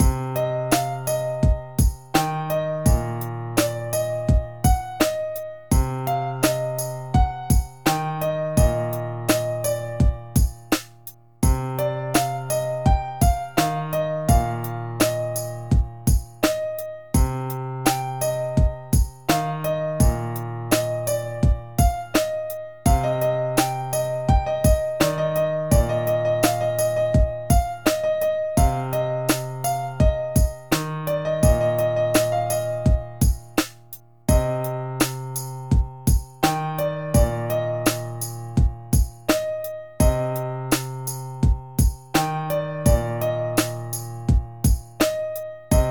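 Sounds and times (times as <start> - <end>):
emotional piano: 0.0 - 45.8.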